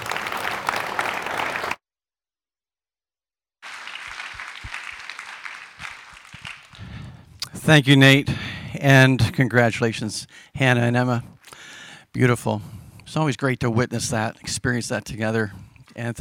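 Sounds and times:
audience applauding: 0.0 - 1.8, 3.6 - 7.3
speech: 7.7 - 11.3, 12.2 - 16.1.

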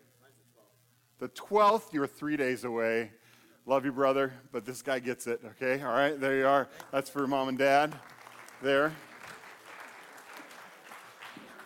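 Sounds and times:
speech: 1.2 - 9.1
crowd clapping: 6.7 - 11.6.

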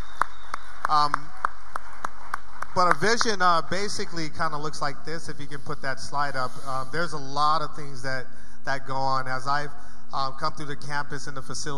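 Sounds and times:
clapping for church volunteers: 0.0 - 3.4
speech: 0.9 - 1.3, 2.8 - 11.7.

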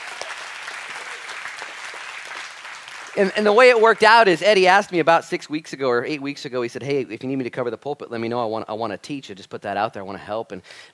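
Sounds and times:
audience applause: 0.0 - 4.3
speech: 3.2 - 10.9.

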